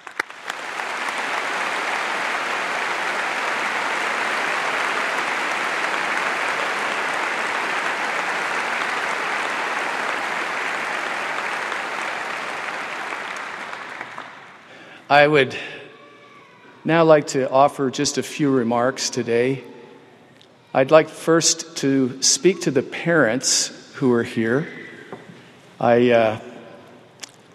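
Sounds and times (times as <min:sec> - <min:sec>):
large crowd applauding: 0:00.0 - 0:15.3
speech: 0:15.1 - 0:15.8, 0:16.8 - 0:19.7, 0:20.7 - 0:24.8, 0:25.8 - 0:26.5.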